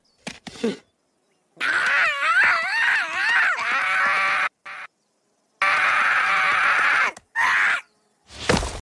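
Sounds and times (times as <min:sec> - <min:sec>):
person screaming: 0:01.6 - 0:04.9, 0:05.6 - 0:07.9.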